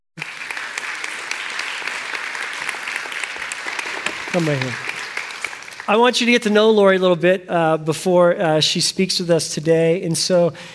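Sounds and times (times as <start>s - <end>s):
crowd applauding: 0.2s - 6.5s
speech: 4.4s - 4.9s, 5.9s - 10.7s.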